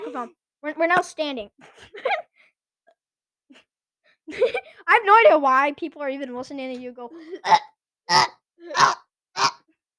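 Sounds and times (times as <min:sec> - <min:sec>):
speech: 0:00.1 - 0:02.2, 0:04.3 - 0:09.5
mouth imitating fart: 0:07.4 - 0:09.7.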